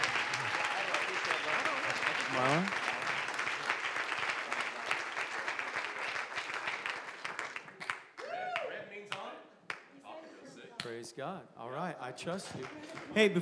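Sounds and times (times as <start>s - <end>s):
audience applause: 0.0s - 8.8s, 12.5s - 13.4s
speech: 2.4s - 2.8s, 11.1s - 13.4s.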